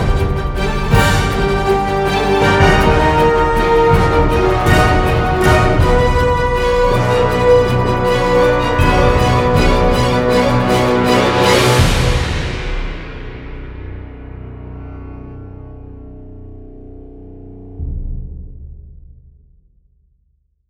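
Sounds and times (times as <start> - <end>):
action strings music: 0.0 - 15.6.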